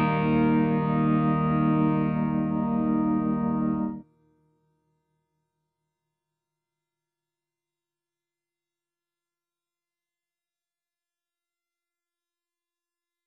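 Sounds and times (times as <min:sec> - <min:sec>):
brass chromatic scale: 0:00.0 - 0:04.0.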